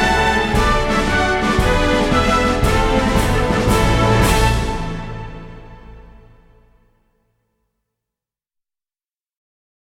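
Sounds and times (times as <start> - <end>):
fanfare: 0.0 - 6.9.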